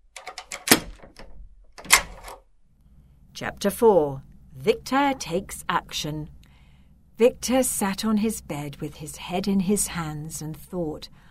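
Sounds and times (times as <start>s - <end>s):
key turning in a door lock: 0.0s - 2.5s
speech: 3.4s - 6.4s, 7.2s - 11.3s.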